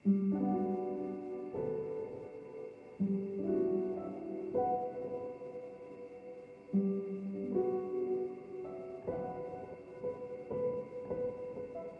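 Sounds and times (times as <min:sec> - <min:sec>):
soft piano loop: 0:00.0 - 0:11.9.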